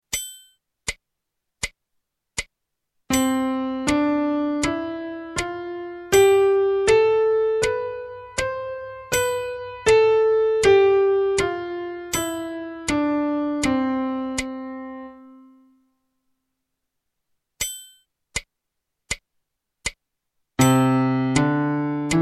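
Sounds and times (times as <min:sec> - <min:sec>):
C major scale: 0:03.1 - 0:15.8, 0:20.6 - 0:22.2.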